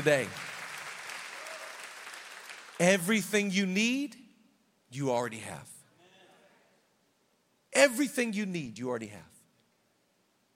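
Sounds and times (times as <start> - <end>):
speech: 0.0 - 0.4, 2.8 - 4.2, 4.9 - 5.7, 7.8 - 9.3
audience clapping: 0.0 - 3.1.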